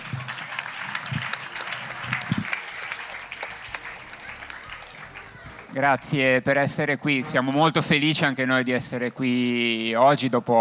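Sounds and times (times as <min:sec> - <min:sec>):
audience applause: 0:00.0 - 0:08.0
speech: 0:05.8 - 0:10.6.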